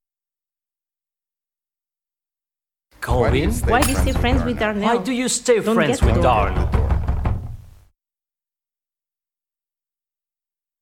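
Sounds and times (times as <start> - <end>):
speech: 3.0 - 6.9
knocking on a door: 3.1 - 4.6, 6.0 - 7.9.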